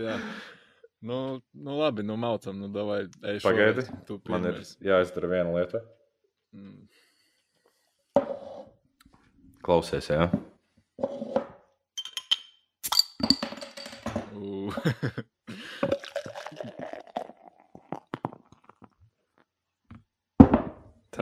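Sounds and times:
speech: 0:00.0 - 0:07.0, 0:09.6 - 0:11.2, 0:14.4 - 0:15.3
glass clinking: 0:12.0 - 0:14.3
person laughing: 0:14.5 - 0:16.0
beer poured with rhythmic glugging: 0:15.6 - 0:19.0.

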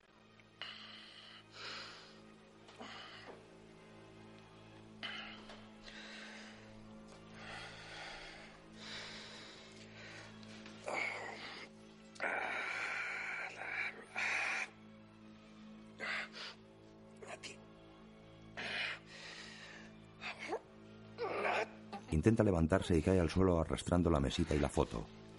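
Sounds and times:
labored rasping breathing of a person eating tiramisu: 0:00.4 - 0:04.2, 0:04.8 - 0:17.0, 0:18.4 - 0:21.8
speech: 0:22.2 - 0:25.2.

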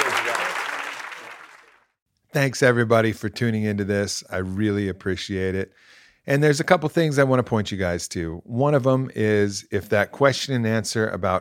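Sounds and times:
audience applause: 0:00.0 - 0:01.8
speech: 0:02.3 - 0:11.3.

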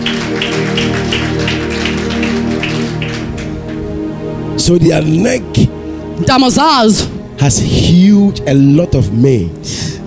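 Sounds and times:
audience clapping hands: 0:00.0 - 0:04.2
speech: 0:00.8 - 0:01.8, 0:04.7 - 0:10.0.

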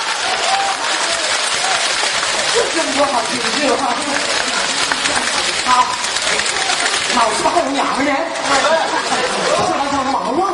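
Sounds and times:
audience applause: 0:00.0 - 0:10.2
laughter: 0:00.7 - 0:10.4
speech: 0:02.7 - 0:04.5, 0:05.1 - 0:10.5.

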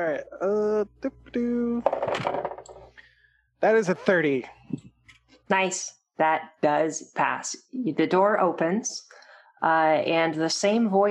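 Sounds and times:
humming tone: 0:00.0 - 0:01.8
speech: 0:00.0 - 0:02.5, 0:03.6 - 0:04.6, 0:05.5 - 0:11.0
dice clattering across a hard surface: 0:01.8 - 0:02.8.

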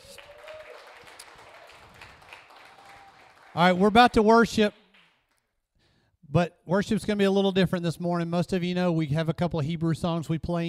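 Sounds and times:
crowd clapping: 0:00.0 - 0:05.5
speech: 0:03.6 - 0:04.8, 0:06.3 - 0:10.6.

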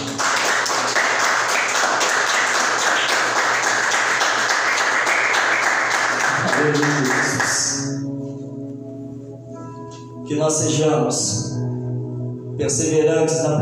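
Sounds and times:
audience clapping hands: 0:00.0 - 0:08.0
speech: 0:10.4 - 0:11.6, 0:12.6 - 0:13.6.

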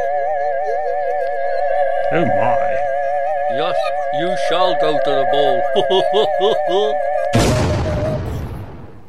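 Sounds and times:
laughter: 0:00.0 - 0:08.4
brief wavering vocal sound: 0:00.0 - 0:08.8
speech: 0:02.1 - 0:02.6, 0:03.5 - 0:07.5
comedic unconvincing weapon firing with a heavy boom and rumbling tail: 0:07.3 - 0:09.0.

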